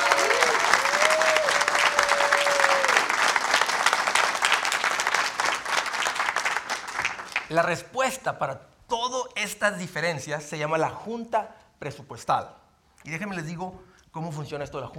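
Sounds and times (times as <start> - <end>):
crowd applause: 0.0 - 7.5
speech: 7.5 - 14.9.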